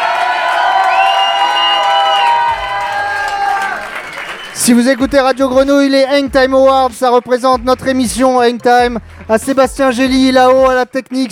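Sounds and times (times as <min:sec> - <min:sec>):
overlapping shouts and high whoops: 0:00.0 - 0:04.1
large crowd roaring and cheering: 0:00.0 - 0:05.5
speech: 0:04.7 - 0:11.3.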